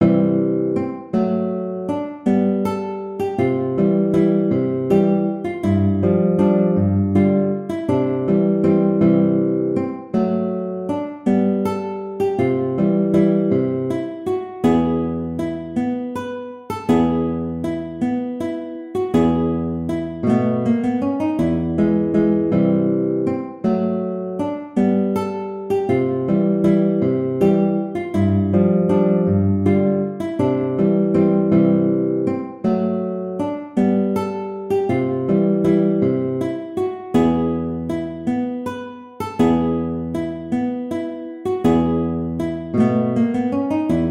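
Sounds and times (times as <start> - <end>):
guitar waltz: 0.0 - 44.0.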